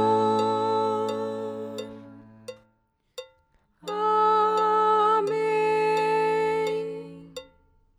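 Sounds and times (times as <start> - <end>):
soprano singing: 0.0 - 2.5, 3.8 - 7.4.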